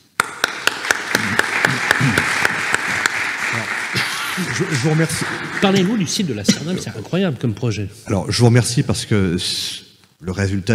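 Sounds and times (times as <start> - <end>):
audience applause: 0.0 - 6.5
speech: 4.5 - 10.7.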